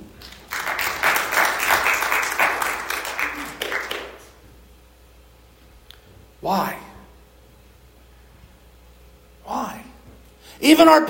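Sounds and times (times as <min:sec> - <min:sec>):
audience clapping: 0:00.0 - 0:04.4
speech: 0:06.5 - 0:06.8, 0:10.6 - 0:11.0.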